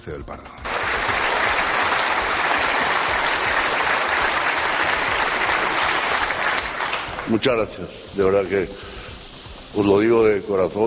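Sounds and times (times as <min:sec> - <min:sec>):
speech: 0:00.0 - 0:01.1, 0:07.3 - 0:08.9, 0:09.8 - 0:10.8
applause from business audience: 0:00.6 - 0:07.4.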